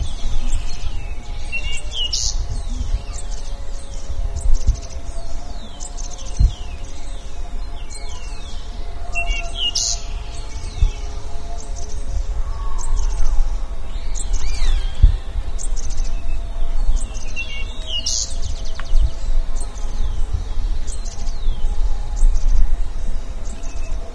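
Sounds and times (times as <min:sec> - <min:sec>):
birds chirping: 0:00.0 - 0:24.1.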